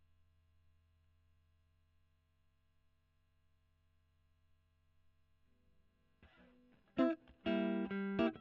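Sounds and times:
electric guitar recorded with a Gefell microphone: 6.2s - 8.3s.

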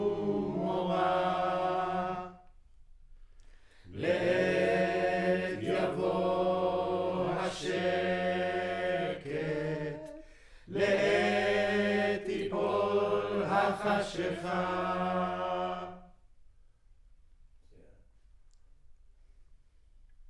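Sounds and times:
choir recorded with center U47 microphone: 0.0s - 2.6s, 3.9s - 16.2s.

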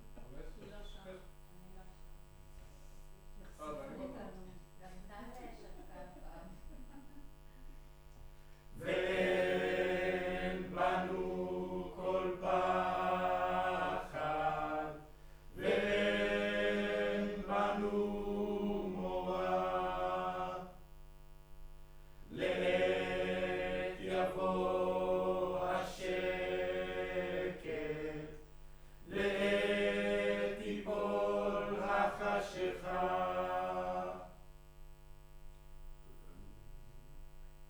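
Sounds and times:
choir singing in room: 8.8s - 20.8s, 22.3s - 34.4s.

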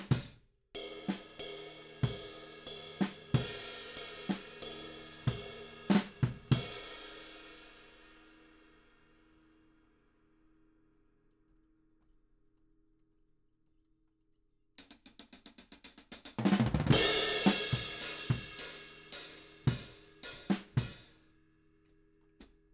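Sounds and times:
ride cymbal: 0.1s - 8.6s, 14.8s - 21.3s.

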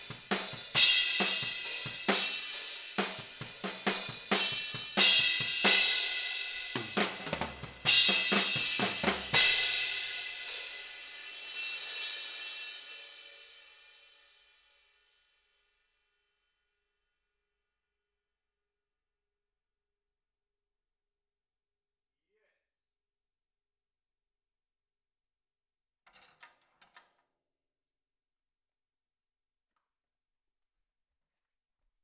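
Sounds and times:
ride cymbal: 0.0s - 14.6s.

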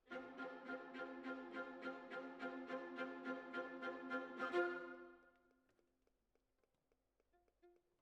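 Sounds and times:
cellos playing: 0.0s - 5.2s.

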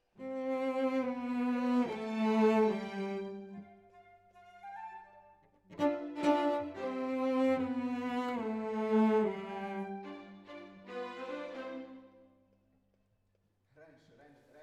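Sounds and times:
cello solo: 0.0s - 5.0s, 5.7s - 12.3s.

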